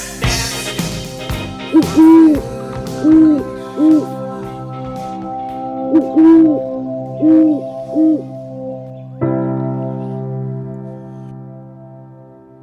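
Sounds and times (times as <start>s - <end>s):
steady sustained tones like a held chime or synth chord: 0.1s - 12.4s
owl hooting: 1.6s - 4.6s, 5.9s - 9.2s.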